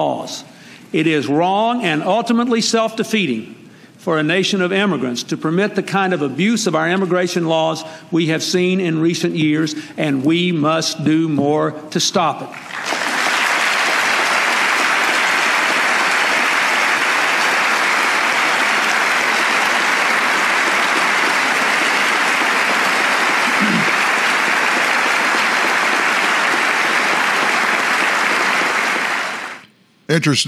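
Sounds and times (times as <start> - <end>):
speech: 0.0 - 12.9, 30.2 - 30.4
large crowd applauding: 12.5 - 30.4.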